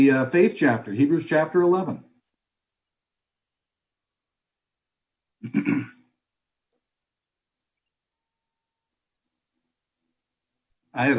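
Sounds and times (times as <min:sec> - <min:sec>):
speech: 0:00.0 - 0:02.1, 0:05.4 - 0:05.9, 0:11.0 - 0:11.1
coughing: 0:05.4 - 0:06.1.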